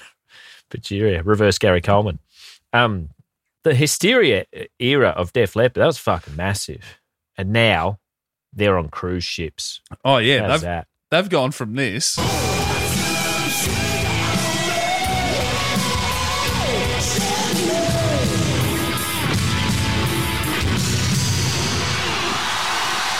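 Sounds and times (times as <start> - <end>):
speech: 0.7 - 12.8
thunderous crowd applause: 12.2 - 23.1.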